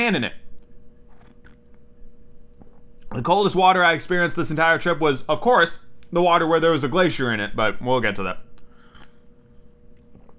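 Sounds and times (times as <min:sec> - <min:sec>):
speech: 0:00.0 - 0:00.4, 0:03.1 - 0:08.5
person sipping tea: 0:00.6 - 0:03.2, 0:08.6 - 0:10.3.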